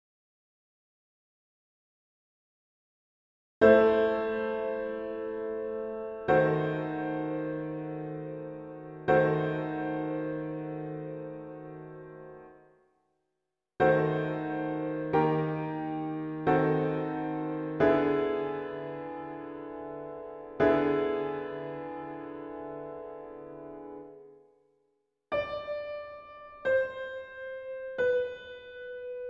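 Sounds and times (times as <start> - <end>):
piano playing a mass setting: 3.7 - 12.5, 13.8 - 24.3, 25.3 - 29.2.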